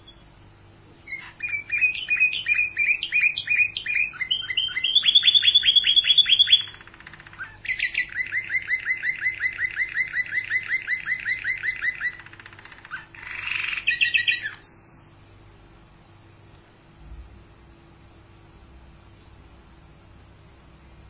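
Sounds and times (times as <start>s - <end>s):
canary song with high whistles, buzzy rattles and trills: 0.0s - 16.4s.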